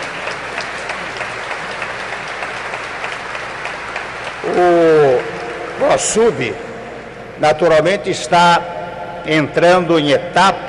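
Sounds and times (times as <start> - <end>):
audience applause: 0.0 - 6.6
speech: 4.5 - 5.0, 5.9 - 6.7, 7.4 - 10.6.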